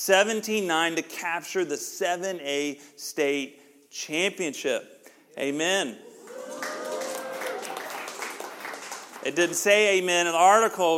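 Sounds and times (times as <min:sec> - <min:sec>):
speech: 0:00.0 - 0:06.6, 0:09.2 - 0:10.9
church audience applauding: 0:06.1 - 0:09.6.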